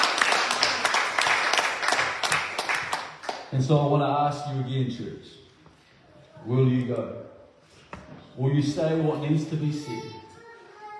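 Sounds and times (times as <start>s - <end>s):
round of applause: 0.0s - 3.5s
speech: 3.5s - 5.4s, 6.4s - 7.4s, 8.1s - 10.2s.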